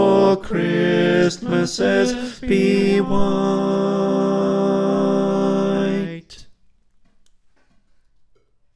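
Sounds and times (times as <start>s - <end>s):
choir singing: 0.0s - 6.5s
tenor voice: 0.0s - 6.5s.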